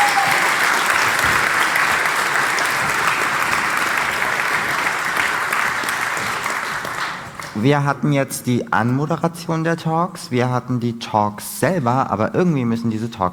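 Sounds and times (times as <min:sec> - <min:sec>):
audience applause: 0:00.0 - 0:07.8
speech: 0:07.6 - 0:13.3.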